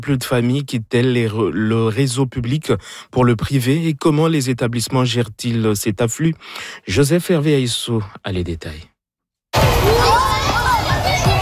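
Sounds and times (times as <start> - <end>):
speech: 0.0 - 8.9
children playing in a private school playground at recess: 9.6 - 11.3.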